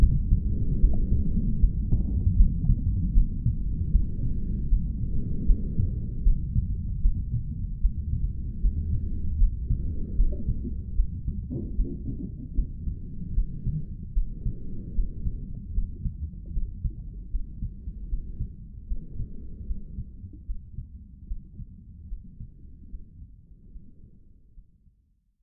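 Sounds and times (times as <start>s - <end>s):
sounds inside a mother's womb: 0.0s - 25.4s.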